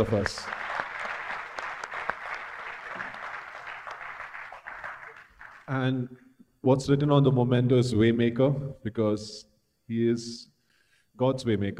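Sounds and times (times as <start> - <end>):
speech: 0.0 - 0.6, 5.7 - 10.5, 11.2 - 11.7
audience applause: 0.0 - 5.8.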